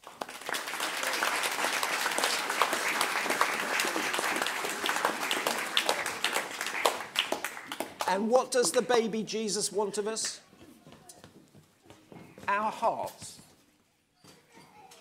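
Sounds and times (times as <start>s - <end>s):
audience applause: 0.0s - 8.3s
speech: 8.1s - 10.5s, 12.5s - 13.4s.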